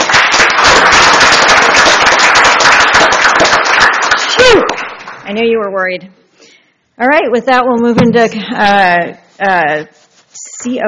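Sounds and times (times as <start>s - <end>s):
crowd applauding: 0.0s - 5.3s
speech: 5.3s - 6.2s, 7.0s - 10.0s, 10.6s - 10.8s.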